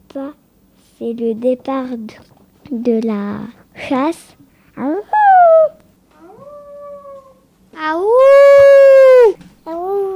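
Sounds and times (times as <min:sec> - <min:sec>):
speech: 0:01.0 - 0:04.9
person imitating wolf howl: 0:05.1 - 0:07.5, 0:08.1 - 0:09.4.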